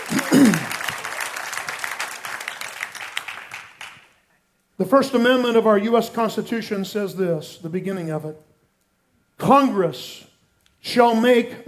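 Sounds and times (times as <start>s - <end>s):
audience applause and clapping: 0.0s - 4.3s
speech: 4.8s - 8.5s, 9.4s - 11.6s.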